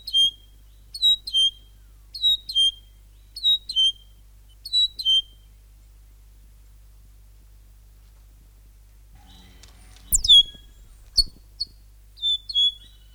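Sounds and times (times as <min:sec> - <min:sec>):
North Island saddleback singing rich repeated chattering notes: 0:00.0 - 0:05.4, 0:09.2 - 0:13.1.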